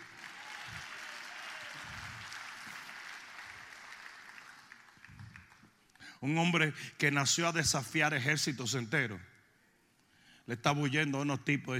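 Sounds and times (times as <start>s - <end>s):
audience applause: 0.0s - 5.7s
speech: 6.2s - 9.3s, 10.5s - 11.7s.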